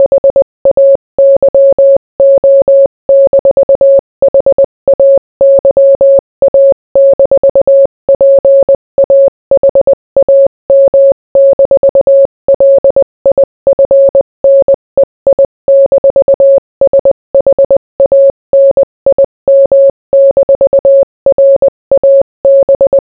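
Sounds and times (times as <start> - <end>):
morse code beeps: 0.0 - 23.1.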